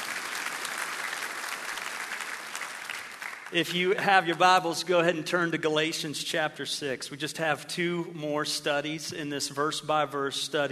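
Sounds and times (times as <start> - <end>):
audience applause: 0.0 - 4.4
speech: 3.5 - 10.7.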